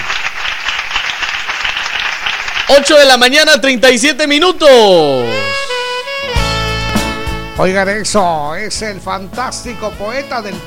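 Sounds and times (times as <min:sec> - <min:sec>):
applause: 0:00.0 - 0:03.3
speech: 0:02.7 - 0:05.6, 0:07.6 - 0:10.6.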